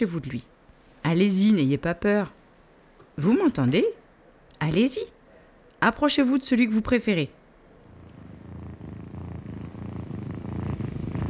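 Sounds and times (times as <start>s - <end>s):
speech: 0.0s - 2.4s, 3.2s - 4.0s, 4.6s - 5.2s, 5.8s - 7.4s
lion purring: 7.9s - 11.2s.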